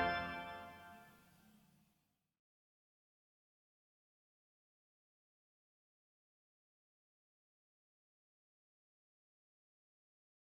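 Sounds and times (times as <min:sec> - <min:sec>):
organ prelude: 0:00.0 - 0:01.0.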